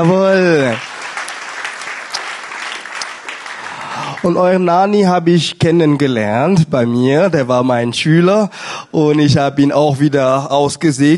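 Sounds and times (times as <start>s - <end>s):
speech: 0.0s - 0.9s, 4.2s - 11.1s
audience applause: 0.0s - 4.6s.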